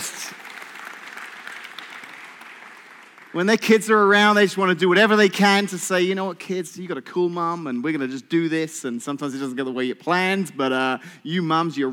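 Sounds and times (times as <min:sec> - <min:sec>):
audience applause: 0:00.0 - 0:03.5
speech: 0:03.3 - 0:11.9.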